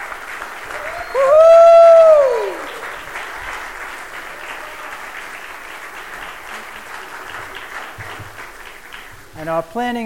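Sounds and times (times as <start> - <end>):
audience applause at a church service after an engagement announcement: 0.0 - 9.7
long sustained whooping cheer: 0.6 - 3.0
speech: 9.5 - 10.0.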